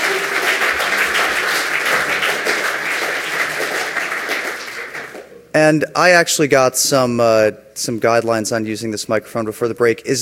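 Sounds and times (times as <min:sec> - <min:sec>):
audience applause: 0:00.0 - 0:05.3
speech: 0:05.6 - 0:10.2.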